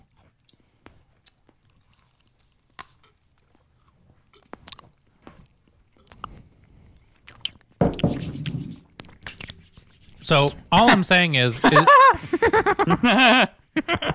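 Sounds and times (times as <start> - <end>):
chewing crunchy cookies: 0.0 - 7.8
speech: 10.3 - 14.1
laughter: 10.7 - 14.1.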